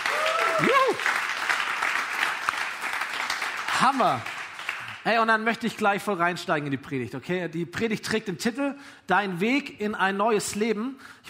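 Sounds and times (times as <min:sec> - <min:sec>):
audience applause: 0:00.0 - 0:05.0
speech: 0:03.8 - 0:04.3, 0:05.0 - 0:11.2.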